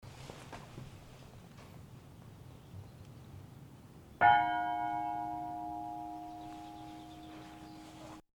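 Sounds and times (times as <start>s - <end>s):
bell ringing: 4.2s - 7.9s.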